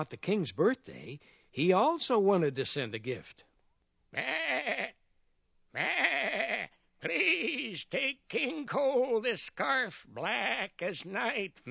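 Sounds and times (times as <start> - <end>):
speech: 0.0 - 3.5, 4.1 - 4.8, 5.8 - 6.0, 7.0 - 11.6
sheep bleating: 4.2 - 5.0, 5.8 - 7.8, 10.2 - 10.8.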